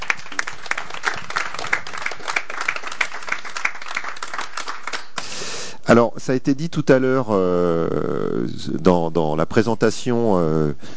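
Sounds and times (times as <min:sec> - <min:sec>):
audience applause: 0:00.0 - 0:05.3
speech: 0:05.9 - 0:10.9.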